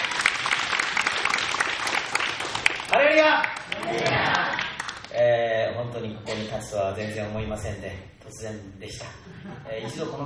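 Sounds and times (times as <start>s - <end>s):
church congregation applauding to welcome a preacher: 0.0s - 5.1s
speech: 2.9s - 4.4s, 5.8s - 10.2s.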